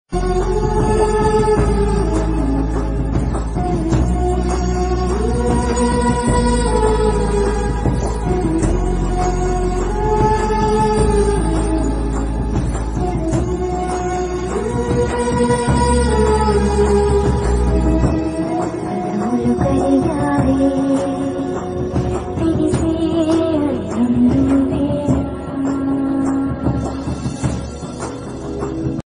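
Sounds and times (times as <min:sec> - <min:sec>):
background music ringtone: 0:00.1 - 0:29.0.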